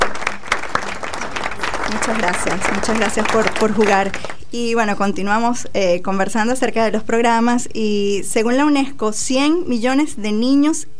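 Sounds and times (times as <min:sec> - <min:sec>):
many hands clapping for girls who have just played a game: 0:00.0 - 0:04.4
speech: 0:01.9 - 0:10.9.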